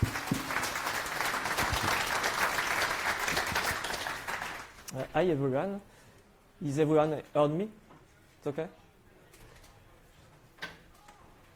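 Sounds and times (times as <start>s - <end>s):
round of applause: 0.0s - 4.9s
speech: 5.2s - 5.9s, 6.6s - 7.8s, 8.4s - 8.8s.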